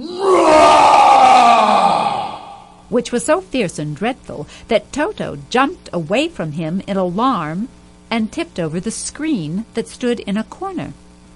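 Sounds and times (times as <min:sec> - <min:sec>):
lion roaring: 0:00.0 - 0:02.8
speech: 0:02.9 - 0:11.0.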